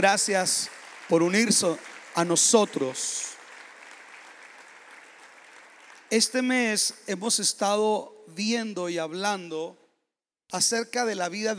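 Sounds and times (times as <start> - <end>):
speech: 0.0 - 3.3, 6.1 - 9.8, 10.5 - 11.5
crowd applause: 0.0 - 6.9.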